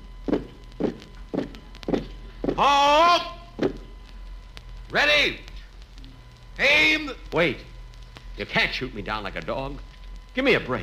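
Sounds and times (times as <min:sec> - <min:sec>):
footsteps marching into a courtyard: 0:00.2 - 0:02.9, 0:03.6 - 0:03.9
speech: 0:02.6 - 0:03.8, 0:04.9 - 0:05.5, 0:06.6 - 0:07.7, 0:08.4 - 0:10.8.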